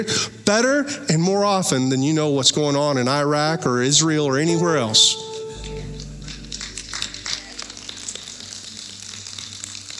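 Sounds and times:
speech: 0.0s - 5.3s
audience clapping: 4.7s - 9.9s.

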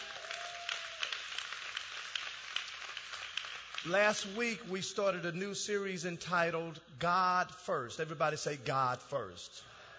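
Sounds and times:
audience clapping: 0.0s - 5.1s
speech: 3.8s - 9.7s.

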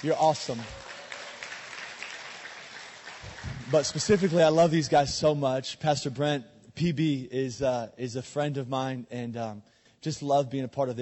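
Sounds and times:
speech: 0.0s - 0.8s, 3.7s - 11.0s
crowd clapping: 0.0s - 5.0s.

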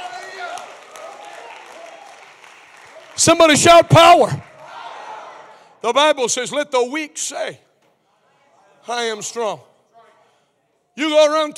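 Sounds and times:
audience clapping hands: 0.0s - 4.8s
audience cheering: 0.0s - 5.6s
speech: 3.2s - 4.5s, 5.8s - 7.6s, 8.8s - 9.7s, 11.0s - 11.5s.

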